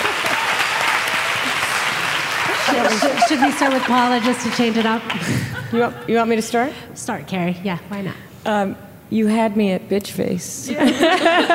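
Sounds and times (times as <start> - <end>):
audience applause at a live show: 0.0 - 5.6
laughter: 1.4 - 6.4, 10.7 - 11.5
speech: 2.7 - 11.5.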